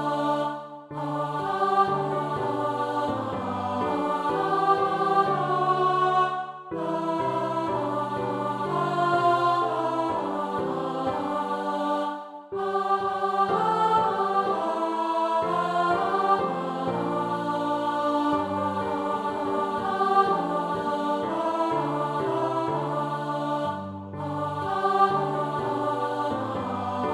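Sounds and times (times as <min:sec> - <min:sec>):
alto voice singing a carol: 0:00.0 - 0:27.1.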